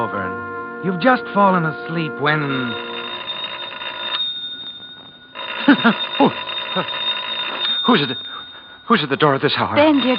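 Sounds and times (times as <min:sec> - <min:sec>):
speech: 0:00.0 - 0:02.9, 0:05.8 - 0:07.0, 0:07.9 - 0:08.3, 0:08.9 - 0:10.1
telephone ringing: 0:02.4 - 0:10.1.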